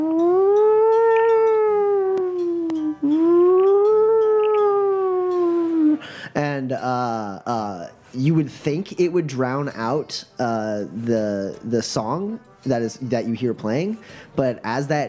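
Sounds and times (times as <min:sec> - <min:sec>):
voice imitating a siren: 0:00.0 - 0:06.0
speech: 0:06.7 - 0:15.0.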